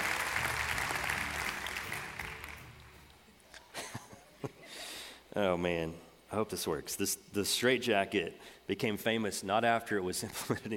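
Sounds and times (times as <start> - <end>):
audience applause: 0.0 - 3.1
speech: 5.3 - 10.7.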